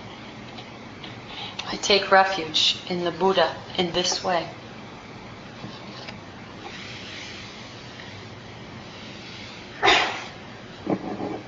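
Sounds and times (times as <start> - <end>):
speech: 1.7 - 4.6
sneeze: 9.8 - 10.4.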